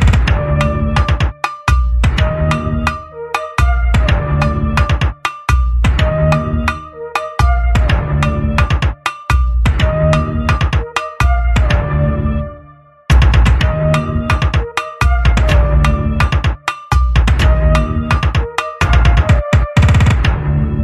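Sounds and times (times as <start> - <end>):
funk instrumental music: 0.1 - 12.0, 13.1 - 20.6.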